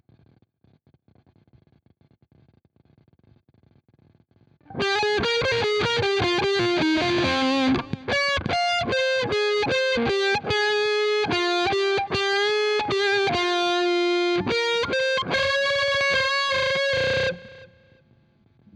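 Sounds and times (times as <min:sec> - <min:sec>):
guitar: 0:04.6 - 0:18.7.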